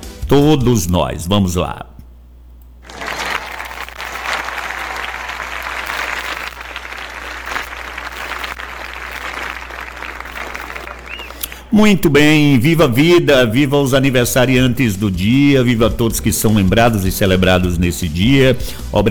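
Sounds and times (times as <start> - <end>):
speech: 0.3 - 1.9, 11.8 - 19.0
audience applause: 2.8 - 11.6.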